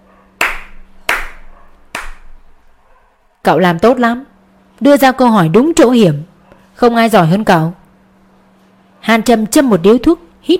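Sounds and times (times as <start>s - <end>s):
sharp hand claps in approval: 0.4s - 2.4s
speech: 3.4s - 7.8s, 9.0s - 10.5s.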